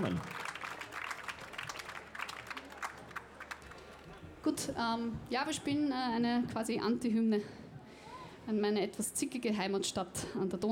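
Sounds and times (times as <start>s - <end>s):
speech: 0.0s - 0.4s, 4.4s - 7.6s, 8.5s - 10.6s
audience applause: 0.0s - 4.2s.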